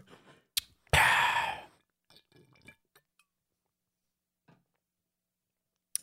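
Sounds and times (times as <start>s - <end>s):
person drinking water: 0.6s - 3.1s.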